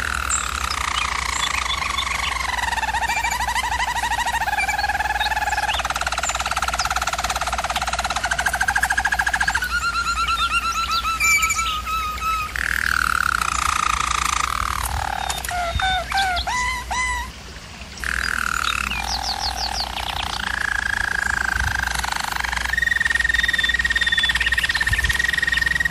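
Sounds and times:
German Roller canary rolling song: 0.0 - 25.8.

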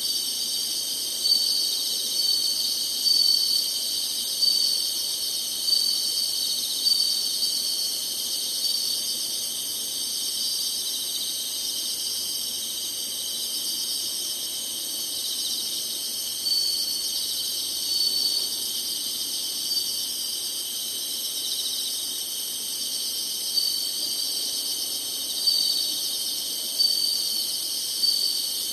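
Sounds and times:
insect chorus: 0.0 - 28.7
thin whistled notes: 16.5 - 18.6.

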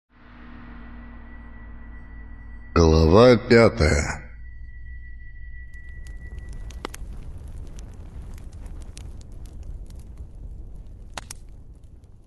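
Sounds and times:
speech: 2.8 - 4.2
logs crackling in a fireplace: 5.7 - 12.2.

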